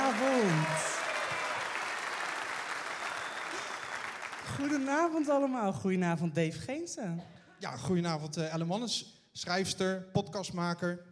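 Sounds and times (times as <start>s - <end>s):
audience applause: 0.0s - 5.3s
speech: 4.6s - 11.1s.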